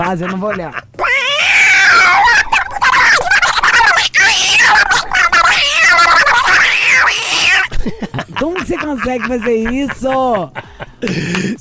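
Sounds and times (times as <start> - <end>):
person imitating a cat in a fight yowling: 0.0 - 7.7
laughter: 0.0 - 11.6
speech: 0.1 - 1.0, 7.9 - 11.6.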